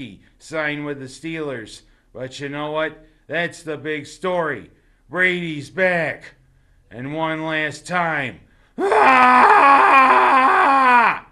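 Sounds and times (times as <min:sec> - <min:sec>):
speech: 0:00.0 - 0:10.5
voice imitating a Wookiee roar: 0:08.8 - 0:11.3.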